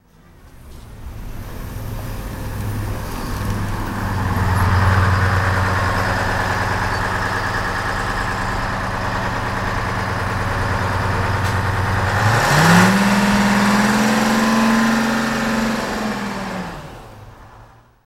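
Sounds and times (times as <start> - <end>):
bus driving: 0.0 - 18.0.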